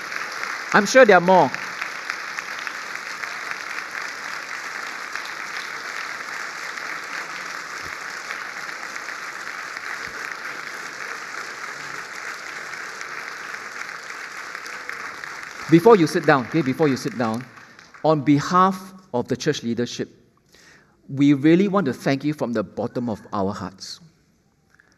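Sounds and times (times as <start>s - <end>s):
audience clapping: 0.0s - 19.0s
speech: 0.7s - 1.6s, 15.7s - 20.2s, 21.1s - 24.0s.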